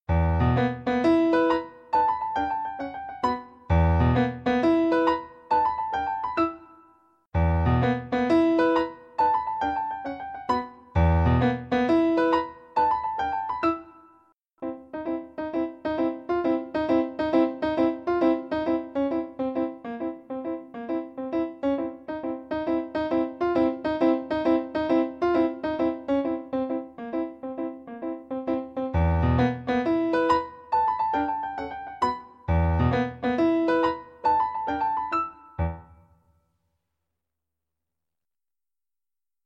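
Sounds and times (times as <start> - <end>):
piano music: 0.1 - 36.1.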